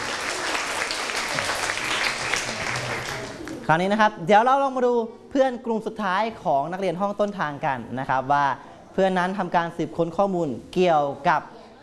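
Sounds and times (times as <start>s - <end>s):
classroom applause: 0.0s - 3.6s
speech: 3.7s - 11.5s.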